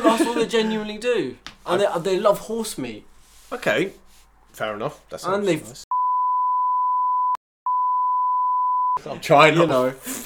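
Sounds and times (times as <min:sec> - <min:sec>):
laughter: 0:00.0 - 0:00.7
speech: 0:00.2 - 0:05.9, 0:09.0 - 0:10.2
censor bleep tone: 0:05.9 - 0:09.0.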